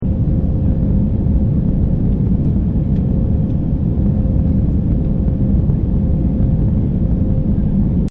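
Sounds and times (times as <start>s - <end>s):
airplane ambience: 0.0s - 8.1s.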